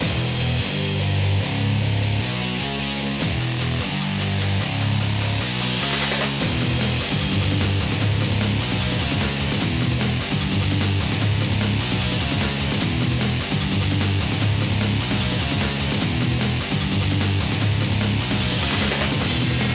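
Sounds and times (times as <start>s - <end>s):
battle background music: 0.0s - 19.7s.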